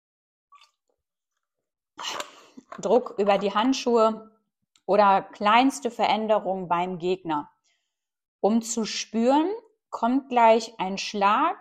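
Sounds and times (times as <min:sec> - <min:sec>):
person sipping a drink: 0:02.0 - 0:02.8
speech: 0:02.8 - 0:04.3, 0:04.9 - 0:07.5, 0:08.4 - 0:11.5.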